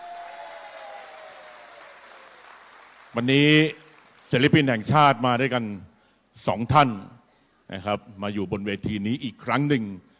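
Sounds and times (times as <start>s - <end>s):
audience applause: 0.0s - 4.3s
speech: 3.1s - 10.1s.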